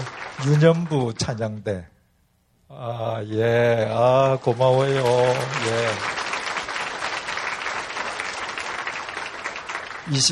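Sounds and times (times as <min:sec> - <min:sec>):
audience applause: 0:00.0 - 0:01.4, 0:03.8 - 0:10.3
speech: 0:00.4 - 0:02.0, 0:02.7 - 0:06.2, 0:10.1 - 0:10.3.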